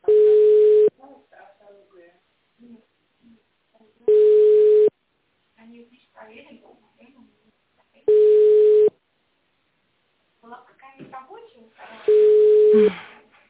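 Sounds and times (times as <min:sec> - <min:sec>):
telephone ringback tone for an unanswered call: 0:00.0 - 0:00.9, 0:04.1 - 0:04.9, 0:08.1 - 0:08.9, 0:12.1 - 0:12.8.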